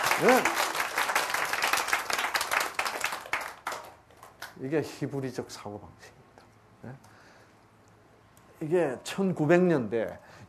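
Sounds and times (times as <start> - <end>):
audience clapping: 0.0 - 4.6
speech: 0.2 - 0.6, 4.6 - 6.2, 6.8 - 7.1, 8.6 - 10.4.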